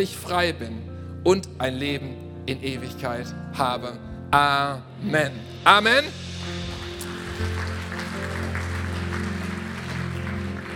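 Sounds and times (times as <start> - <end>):
speech: 0.0 - 6.6
sustained low musical tones: 0.0 - 10.7
audience applause: 6.7 - 10.7.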